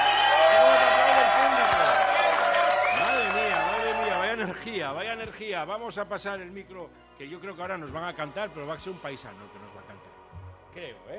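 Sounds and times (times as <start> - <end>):
concert crowd ovation clapping and cheering: 0.0 - 4.6
speech: 4.6 - 10.1, 10.8 - 11.1.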